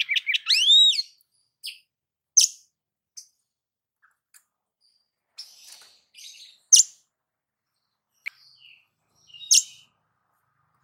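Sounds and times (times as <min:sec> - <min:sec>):
oriental magpie-robin singing: 0:00.0 - 0:03.4, 0:04.8 - 0:07.1, 0:07.7 - 0:10.0.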